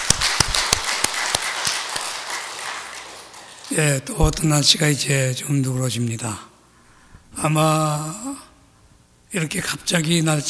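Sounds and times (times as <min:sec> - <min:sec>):
applause for the choir: 0:00.0 - 0:04.3
speech: 0:03.7 - 0:06.5, 0:07.4 - 0:08.5, 0:09.3 - 0:10.4.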